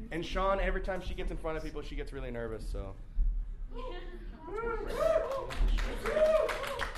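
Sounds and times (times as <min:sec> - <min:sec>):
speech: 0:00.1 - 0:03.1, 0:03.7 - 0:05.1
clapping: 0:05.2 - 0:06.9.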